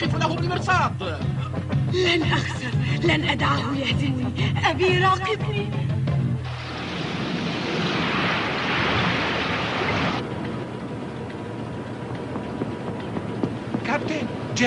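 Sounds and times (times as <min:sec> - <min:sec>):
speech: 0:00.0 - 0:06.0, 0:13.9 - 0:14.6
wind: 0:06.3 - 0:14.6
stormy sea waves: 0:06.5 - 0:11.7.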